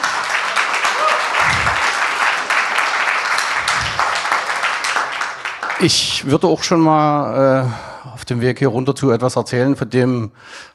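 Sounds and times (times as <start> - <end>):
audience applause: 0.0 - 6.1
low thumps: 1.4 - 1.8
speech: 5.8 - 10.7.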